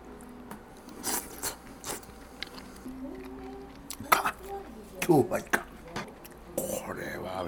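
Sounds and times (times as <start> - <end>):
biting and chewing pufferfish flesh, skin and liver with scallion: 0.0 - 6.4
speech: 5.0 - 5.7.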